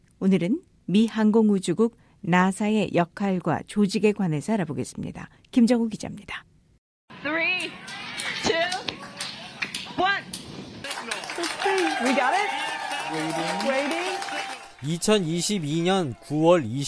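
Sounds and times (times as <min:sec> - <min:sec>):
speech: 0:00.2 - 0:06.5, 0:12.0 - 0:14.0, 0:14.8 - 0:16.8
cheering in DART mission control room: 0:07.6 - 0:10.0, 0:10.8 - 0:16.8.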